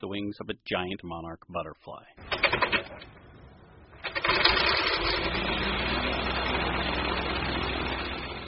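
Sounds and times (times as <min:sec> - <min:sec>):
speech: 0:00.0 - 0:03.2, 0:04.3 - 0:05.6
ultralight glider's small engine: 0:04.0 - 0:08.4.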